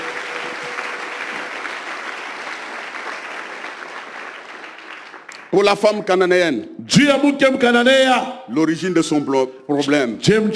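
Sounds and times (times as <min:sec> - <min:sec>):
church congregation clapping: 0:00.0 - 0:06.1
speech: 0:05.5 - 0:10.5.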